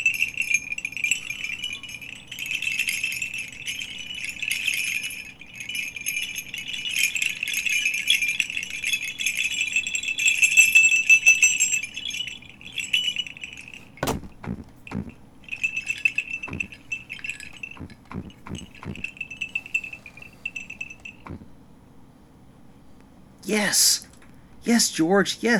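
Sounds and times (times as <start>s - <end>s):
sleigh bells jingling: 0.0s - 21.5s
sharp knocks: 13.8s - 15.2s, 16.4s - 19.2s, 21.0s - 21.5s
speech: 24.7s - 25.5s.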